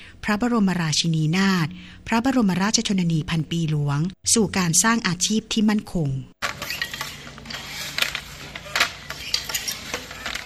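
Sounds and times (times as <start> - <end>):
speech: 0.3 - 6.4
traditional Thai throw-shuttle floor loom kee kratob clacking in Pattani: 6.4 - 10.4.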